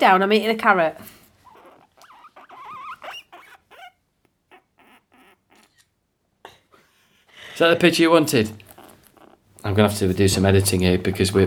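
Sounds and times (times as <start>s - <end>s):
speech: 0.0s - 1.2s, 7.6s - 8.6s, 9.6s - 11.4s
guinea pig squeaking: 1.4s - 5.9s, 8.6s - 11.4s
scuffling and pattering: 8.4s - 11.4s.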